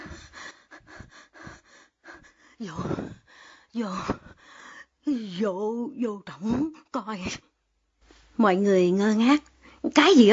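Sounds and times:
person acting out heavy ragged panting: 0:00.0 - 0:05.0
speech: 0:02.6 - 0:04.3, 0:05.1 - 0:07.5, 0:08.4 - 0:10.3.

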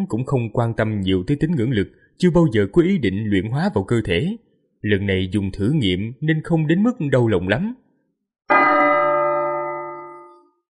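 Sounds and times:
speech: 0:00.0 - 0:07.8
bell ringing: 0:08.5 - 0:10.6.

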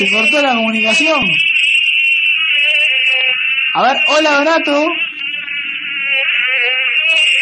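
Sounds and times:
speech: 0:00.0 - 0:01.5, 0:03.7 - 0:05.1
mosquito-like buzz over a phone line from the Botanical Garden in Montevideo: 0:01.8 - 0:04.2, 0:05.0 - 0:07.4.

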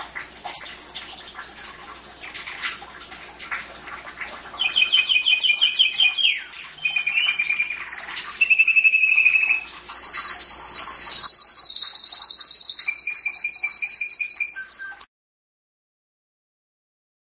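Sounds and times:
canary singing trills: 0:04.6 - 0:15.1.

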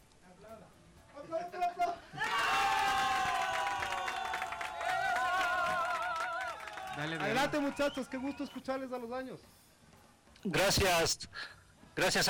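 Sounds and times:
applause: 0:02.2 - 0:08.7
speech: 0:07.0 - 0:09.6, 0:10.4 - 0:12.2.

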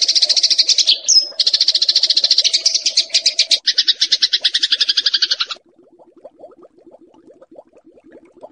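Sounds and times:
bar-winged prinia song: 0:00.0 - 0:05.6.

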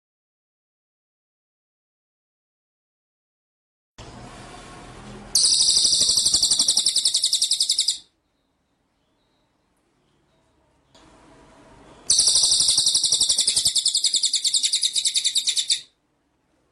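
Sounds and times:
white-rumped shama trilling: 0:05.3 - 0:08.2, 0:12.1 - 0:16.0.

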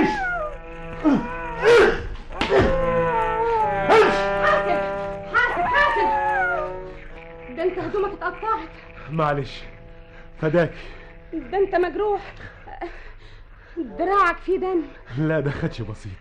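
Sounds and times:
wolf howling and barking: 0:00.0 - 0:09.0
speech: 0:01.0 - 0:01.8, 0:09.1 - 0:09.7, 0:10.4 - 0:13.0, 0:13.8 - 0:16.1.

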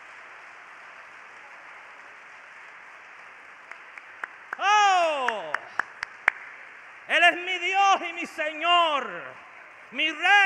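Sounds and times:
church audience clapping: 0:00.0 - 0:07.1
person shouting: 0:04.6 - 0:05.5
speech: 0:07.2 - 0:10.4.

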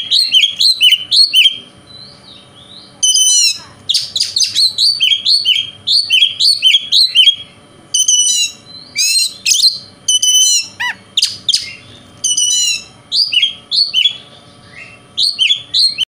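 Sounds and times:
Oriental magpie-robin singing: 0:00.0 - 0:16.0.

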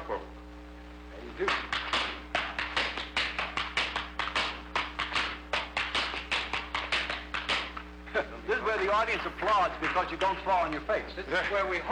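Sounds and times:
faint low hum: 0:00.0 - 0:11.9
speech: 0:01.4 - 0:01.7, 0:08.9 - 0:11.9
tap shoes striking an over-the-top step: 0:01.4 - 0:07.8.

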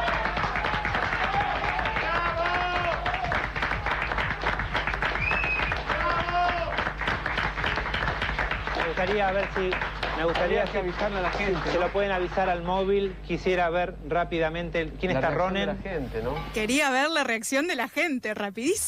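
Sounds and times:
hands clapping, applause: 0:00.0 - 0:12.5
speech: 0:09.0 - 0:18.8.

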